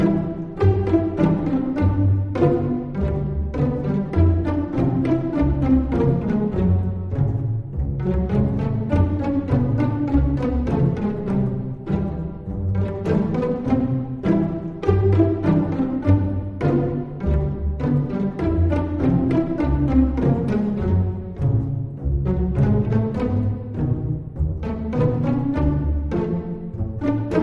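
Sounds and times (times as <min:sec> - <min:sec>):
pizzicato strings: 0:00.0 - 0:27.4.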